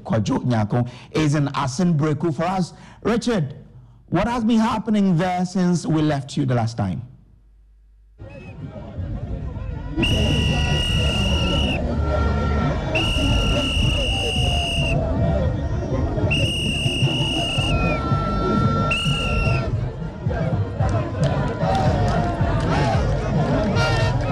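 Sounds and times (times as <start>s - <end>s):
speech: 0.0s - 7.1s, 10.0s - 11.2s
excited crowd of National Democratic Congress supporters celebrating: 8.2s - 24.2s
high whistle blasts: 10.0s - 11.8s, 12.9s - 15.0s, 16.3s - 19.7s.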